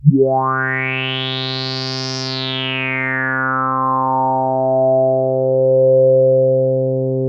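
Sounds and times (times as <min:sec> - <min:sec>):
TS10 analog synthesizer: 0:00.0 - 0:07.2.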